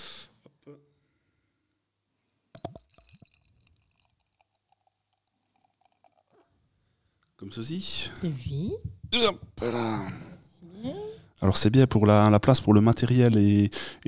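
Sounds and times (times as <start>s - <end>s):
speech: 0.7s - 0.9s, 7.4s - 14.0s
liquid poured from a glass bottle: 2.5s - 6.6s.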